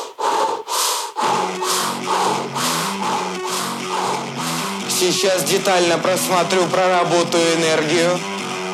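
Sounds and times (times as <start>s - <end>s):
breathing through the mouth: 0.0s - 4.9s
speech: 5.0s - 8.3s.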